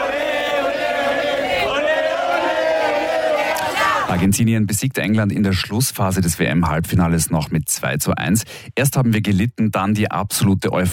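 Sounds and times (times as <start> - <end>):
Argentine football fans cheering: 0.0 - 4.3
speech: 4.1 - 10.9.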